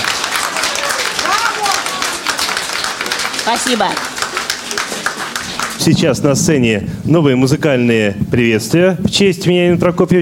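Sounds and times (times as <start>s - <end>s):
audience applause: 0.0s - 6.0s
speech: 3.4s - 4.1s, 5.8s - 10.2s.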